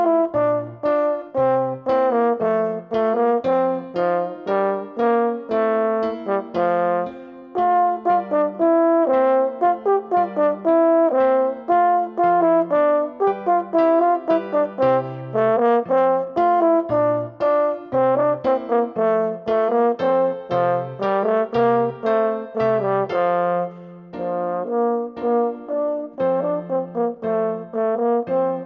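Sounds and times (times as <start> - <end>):
French horn solo: 0.0 - 28.6.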